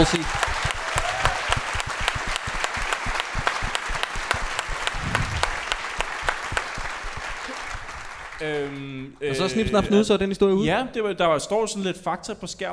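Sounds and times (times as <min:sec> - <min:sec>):
speech: 0:00.0 - 0:00.4, 0:08.4 - 0:12.7
big round of applause: 0:00.0 - 0:09.0.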